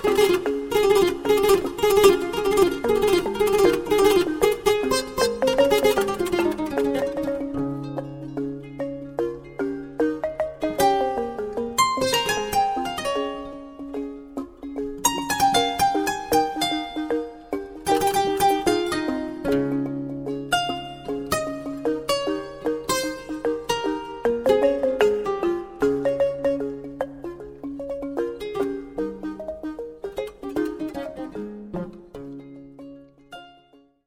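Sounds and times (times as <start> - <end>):
balafon: 0.0 - 34.0
kora: 0.0 - 34.0.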